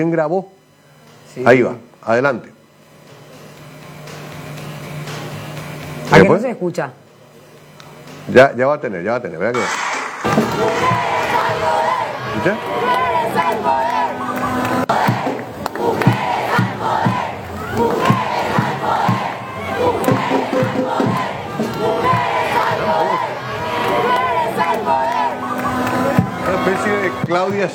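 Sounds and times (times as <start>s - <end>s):
speech: 0.0s - 0.6s, 1.3s - 2.6s, 6.1s - 7.0s, 8.3s - 11.8s, 12.4s - 13.8s, 26.6s - 27.7s
crowd shouting at a rally: 9.6s - 27.7s.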